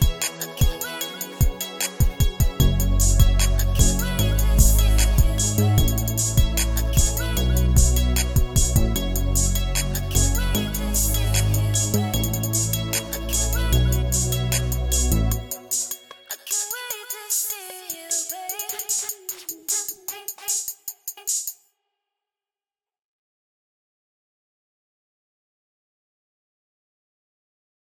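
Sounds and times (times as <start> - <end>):
instrumental music: 0.0 - 16.4.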